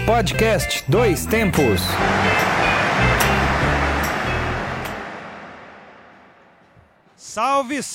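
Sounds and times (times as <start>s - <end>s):
speech: 0.1s - 2.6s, 7.3s - 7.9s
stadium crowd of football fans: 1.6s - 6.8s.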